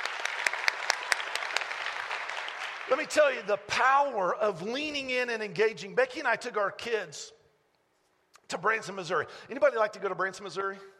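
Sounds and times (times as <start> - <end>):
scattered applause: 0.0 - 3.4
crowd clapping in unison: 0.0 - 3.5
speech: 2.9 - 7.4, 8.5 - 10.9.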